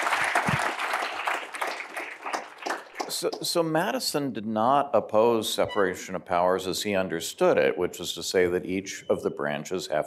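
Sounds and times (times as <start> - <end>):
audience clapping: 0.0 - 3.6
speech: 3.1 - 10.0.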